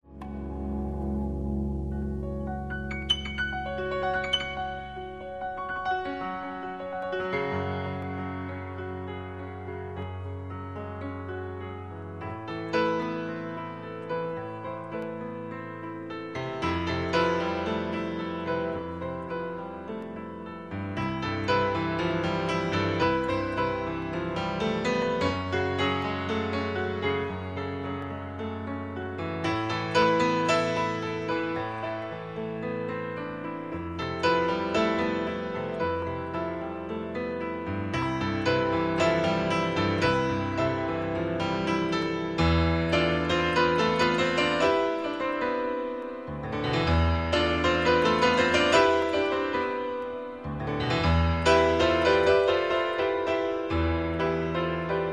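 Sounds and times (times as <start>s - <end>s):
piano: 0.0s - 55.1s.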